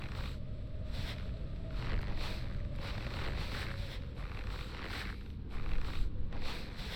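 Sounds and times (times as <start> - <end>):
footsteps in snow: 0.0 - 6.9.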